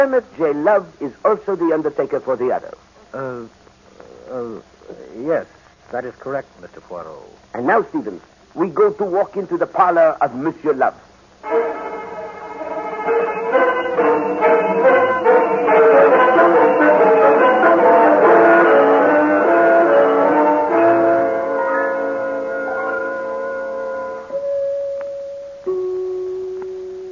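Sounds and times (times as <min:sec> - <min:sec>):
speech: 0:00.0 - 0:03.6, 0:04.3 - 0:11.7
doorbell chimes ringing: 0:11.5 - 0:27.1.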